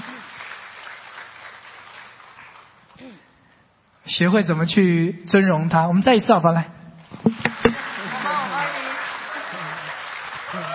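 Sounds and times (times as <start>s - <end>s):
warm applause welcoming a speaker: 0.0s - 2.7s, 7.4s - 10.7s
speech: 3.0s - 3.3s, 4.1s - 7.4s.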